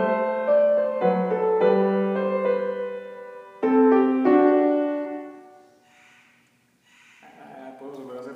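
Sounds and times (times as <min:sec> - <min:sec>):
minuet piece: 0:00.0 - 0:06.1.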